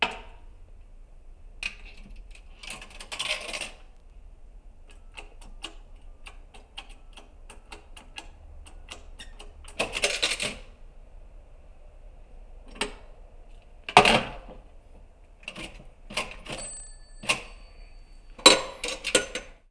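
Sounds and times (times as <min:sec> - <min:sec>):
pay phone: 0:01.6 - 0:03.9, 0:04.8 - 0:10.7, 0:15.4 - 0:19.6.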